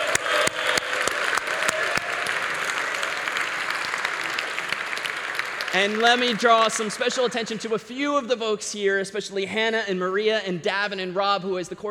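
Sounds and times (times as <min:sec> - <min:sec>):
crowd applause: 0:00.0 - 0:07.9
speech: 0:05.8 - 0:11.8.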